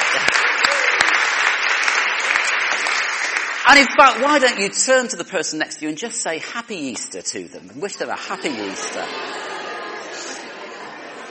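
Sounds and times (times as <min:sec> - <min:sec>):
church congregation applause on Easter Sunday: 0:00.0 - 0:04.8
speech: 0:03.7 - 0:09.5
laughter: 0:08.0 - 0:11.3.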